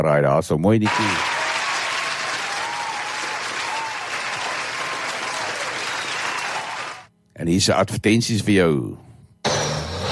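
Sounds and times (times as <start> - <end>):
speech: 0.0 - 1.4, 7.4 - 9.1
crowd applause: 0.9 - 7.1.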